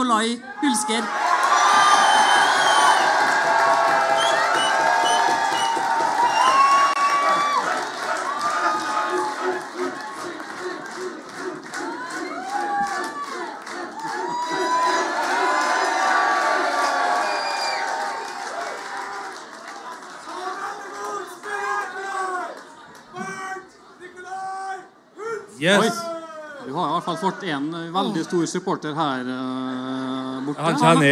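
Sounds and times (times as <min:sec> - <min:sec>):
speech: 0:00.0 - 0:01.2, 0:25.6 - 0:26.0, 0:27.1 - 0:31.1
audience clapping: 0:01.2 - 0:23.6.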